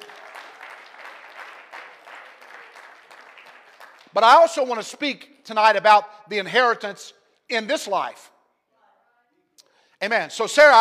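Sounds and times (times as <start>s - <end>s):
audience clapping: 0.0s - 4.9s
speech: 4.1s - 8.3s, 10.0s - 10.7s.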